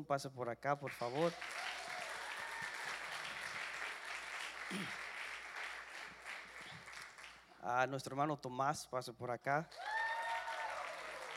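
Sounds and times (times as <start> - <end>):
speech: 0.0 - 1.6, 4.7 - 5.0, 7.6 - 9.8
loud applause from audience: 1.0 - 7.4, 9.7 - 11.3.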